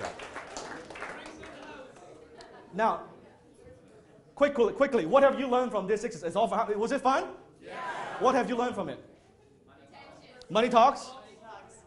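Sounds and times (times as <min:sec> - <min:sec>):
round of applause from a group: 0:00.0 - 0:02.5
speech: 0:02.8 - 0:03.1, 0:04.4 - 0:09.1, 0:10.5 - 0:11.2.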